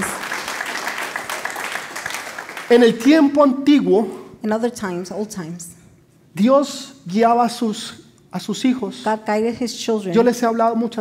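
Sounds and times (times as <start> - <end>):
audience applause: 0.0 - 2.9
speech: 2.7 - 5.7, 6.3 - 10.9.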